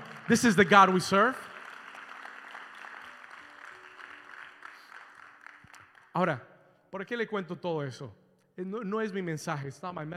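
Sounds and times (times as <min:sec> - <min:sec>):
audience applauding: 0:00.0 - 0:06.2
speech: 0:00.3 - 0:01.5, 0:06.2 - 0:10.1.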